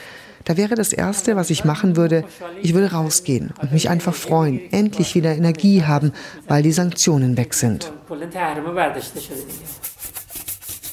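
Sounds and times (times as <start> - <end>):
speech: 0.5 - 10.2
scrubbing a washbasin in an office: 9.1 - 10.9.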